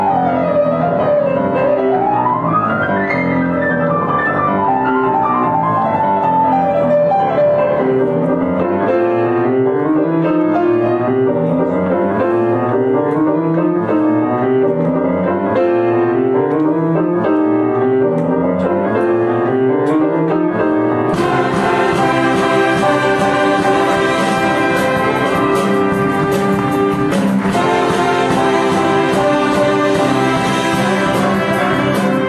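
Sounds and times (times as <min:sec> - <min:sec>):
jazz ensemble playing: 0:00.0 - 0:32.2
soprano solo in a jazz ensemble: 0:21.1 - 0:32.2.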